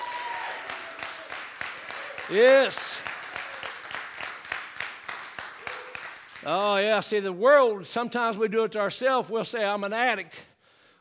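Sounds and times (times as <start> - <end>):
audience clapping hands in praise: 0.0 - 7.0
speech: 2.3 - 2.9, 6.4 - 10.5.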